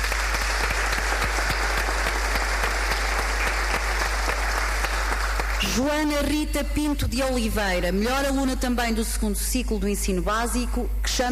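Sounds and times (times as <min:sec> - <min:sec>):
audience applause: 0:00.0 - 0:05.7
speech: 0:05.7 - 0:11.2.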